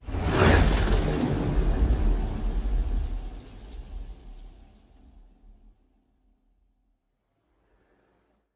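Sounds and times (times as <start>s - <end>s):
destroyer ship moving: 0.0s - 5.0s.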